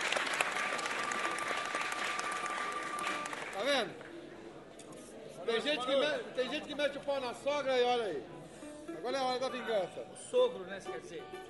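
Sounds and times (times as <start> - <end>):
audience at a samba performance applauding a composer: 0.0 - 3.9
speech: 3.8 - 4.1, 5.5 - 8.4, 9.0 - 11.4.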